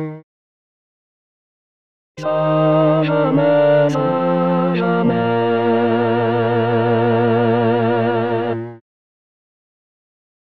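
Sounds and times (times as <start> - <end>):
tender voice: 2.2 - 8.8.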